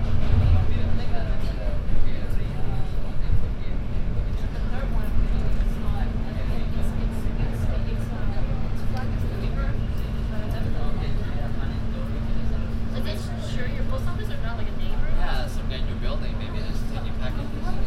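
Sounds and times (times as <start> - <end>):
N subway train low rumble: 0.0 - 17.8
constant hum aboard the N subway train: 0.0 - 17.8
indistinct voices murmuring aboard the N subway train: 0.0 - 17.8.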